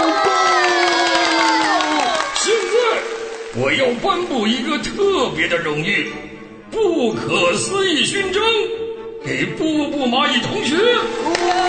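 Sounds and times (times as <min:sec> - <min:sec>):
school pupils cheering and shouting: 0:00.0 - 0:04.3, 0:11.0 - 0:11.6
speech: 0:03.6 - 0:11.6.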